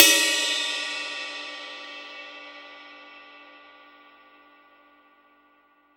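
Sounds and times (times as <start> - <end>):
dry ride cymbal: 0.0 - 3.4.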